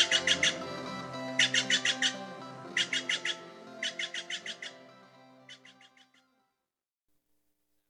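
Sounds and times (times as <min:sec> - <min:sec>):
Steller's jay calls: 0:00.0 - 0:06.2.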